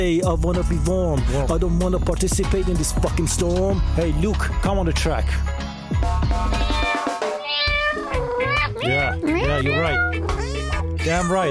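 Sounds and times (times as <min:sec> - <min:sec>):
speech: 0:00.0 - 0:06.8, 0:08.8 - 0:11.5
cat meowing: 0:06.4 - 0:11.5.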